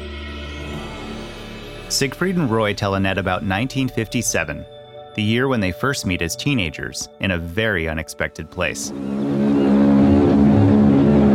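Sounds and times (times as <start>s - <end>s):
speech: 1.9s - 9.3s
ocean liner horn sounding: 8.9s - 11.3s.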